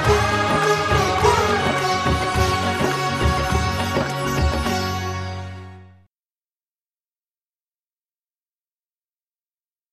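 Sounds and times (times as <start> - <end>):
instrumental music: 0.0 - 6.1.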